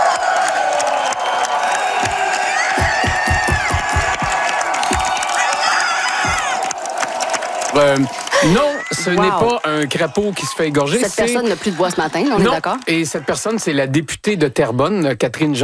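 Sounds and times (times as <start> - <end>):
party supporters cheering and shouting: 0.0 - 14.8
sharp claps or thumps: 0.4 - 8.5
speech: 7.8 - 15.6.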